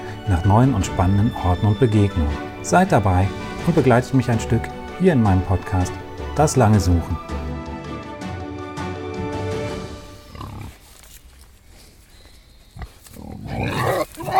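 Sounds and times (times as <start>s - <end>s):
music: 0.0s - 10.8s
speech: 0.3s - 7.4s
two wild boars grunting and squealing in a wildlife park enclosure: 10.0s - 11.0s, 12.6s - 14.3s.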